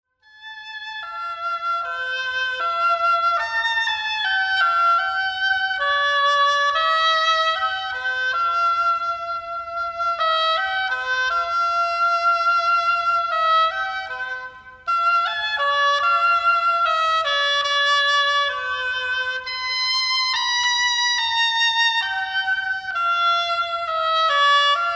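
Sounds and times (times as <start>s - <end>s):
oboe: 0.2s - 24.9s.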